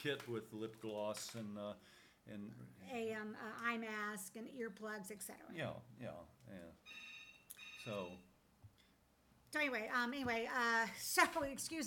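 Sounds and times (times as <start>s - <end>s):
speech: 0.0s - 7.1s, 7.8s - 8.3s, 9.5s - 11.8s
phone ringtone with incoming call: 6.8s - 8.3s.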